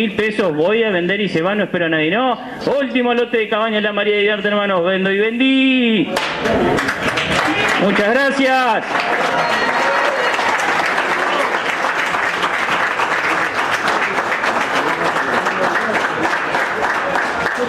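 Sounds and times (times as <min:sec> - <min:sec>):
speech: 0:00.0 - 0:07.1, 0:07.8 - 0:09.7
crowd applause closing an auction: 0:06.4 - 0:17.6.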